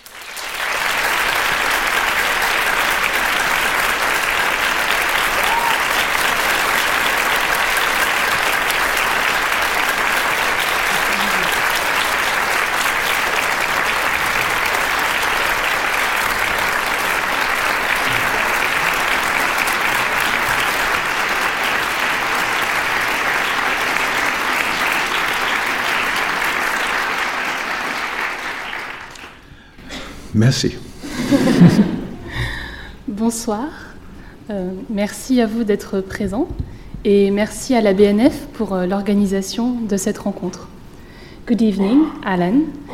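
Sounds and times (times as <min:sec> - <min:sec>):
large audience applauding: 0:00.0 - 0:29.6
laughter: 0:10.9 - 0:12.0, 0:18.0 - 0:21.2, 0:31.0 - 0:32.5
speech: 0:30.5 - 0:30.8, 0:33.3 - 0:33.9, 0:34.5 - 0:40.7, 0:41.5 - 0:42.8.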